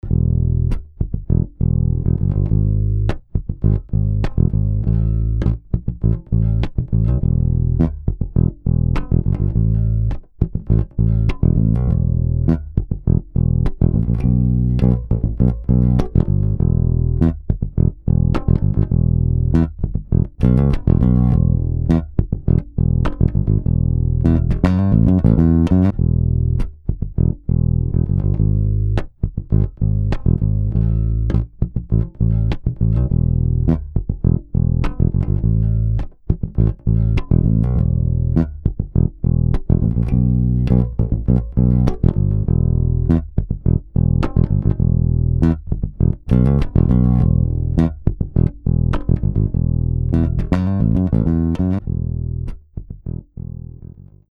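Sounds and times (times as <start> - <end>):
bass: 0.0 - 54.2.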